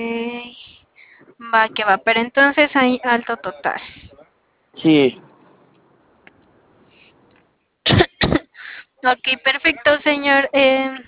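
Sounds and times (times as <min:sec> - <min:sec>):
speech: 0:01.5 - 0:04.0, 0:04.8 - 0:05.3, 0:09.0 - 0:11.0
dry coughs from someone clearing a parched throat: 0:07.9 - 0:08.6.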